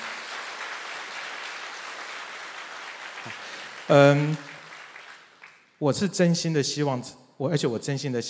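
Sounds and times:
audience applause: 0.0 - 5.7
speech: 3.2 - 4.5, 5.8 - 8.2.

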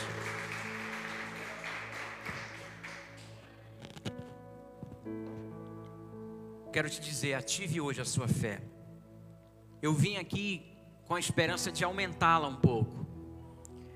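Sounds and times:
crowd clapping: 0.0 - 3.6
keyboard or organ chords: 0.0 - 13.4
speech: 6.8 - 8.7, 9.8 - 13.0.

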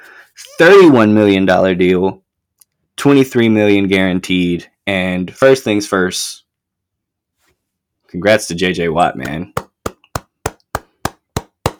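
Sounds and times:
speech: 0.6 - 2.2, 3.0 - 6.4, 8.1 - 9.6
hand claps: 9.2 - 11.7.

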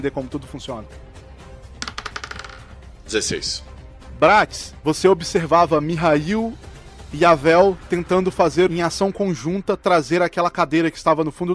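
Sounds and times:
speech: 0.0 - 1.2, 3.1 - 11.5
twenty-sided die clattering across a hard surface: 1.8 - 2.7.

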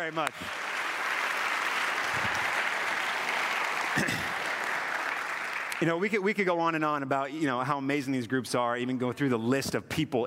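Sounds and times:
speech: 0.0 - 0.7, 5.8 - 10.2
audience applause: 0.0 - 6.0.

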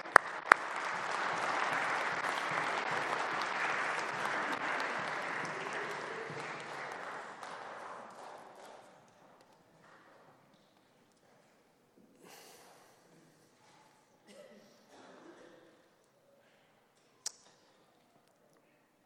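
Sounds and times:
audience applause: 0.0 - 8.9.

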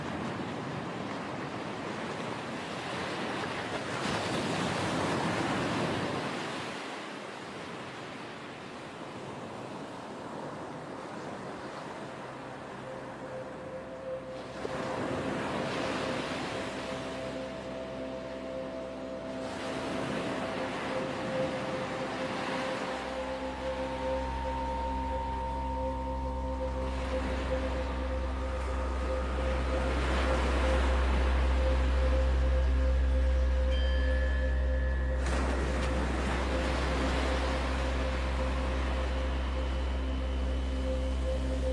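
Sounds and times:
ocean waves washing in and out: 0.0 - 41.7
low steady drone with sustained tones: 12.4 - 41.7
deep hum: 16.7 - 41.7.

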